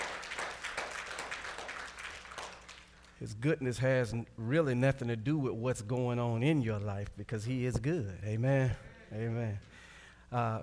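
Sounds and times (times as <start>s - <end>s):
audience hand clapping: 0.0s - 3.2s
speech: 3.2s - 10.6s.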